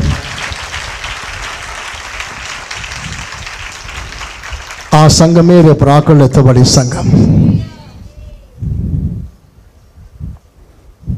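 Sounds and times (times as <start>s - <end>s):
church congregation clapping: 0.0s - 5.8s
speech: 4.9s - 7.5s.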